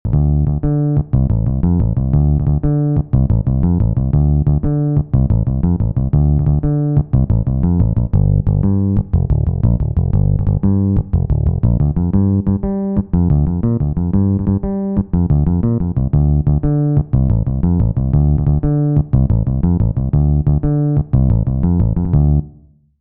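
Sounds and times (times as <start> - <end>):
bass: 0.0 - 22.9.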